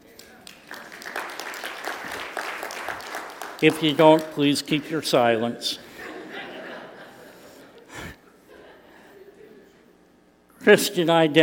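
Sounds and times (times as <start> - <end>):
audience applause: 0.2 - 4.9
speech: 3.6 - 5.9, 10.7 - 11.4
laughter: 5.8 - 9.8.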